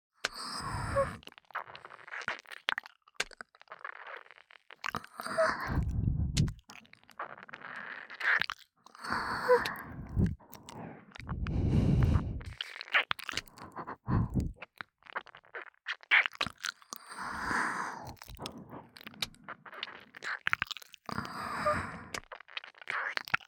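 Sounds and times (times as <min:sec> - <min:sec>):
breathy ASMR breathing in the right ear: 0:00.3 - 0:01.2, 0:05.2 - 0:06.6, 0:09.0 - 0:12.7, 0:13.5 - 0:14.6, 0:17.0 - 0:19.7, 0:21.1 - 0:22.2
ASMR ear licking: 0:00.3 - 0:23.4.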